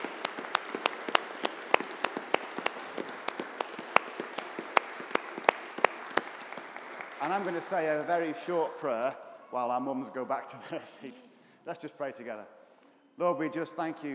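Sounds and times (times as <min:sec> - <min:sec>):
audience applause: 0:00.0 - 0:09.1
speech: 0:07.3 - 0:12.6, 0:13.2 - 0:14.1.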